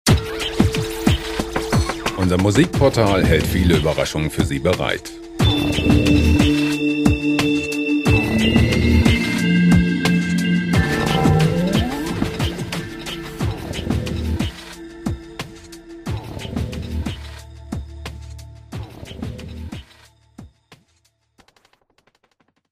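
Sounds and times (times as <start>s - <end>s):
hard jungle music: 0.1s - 20.1s.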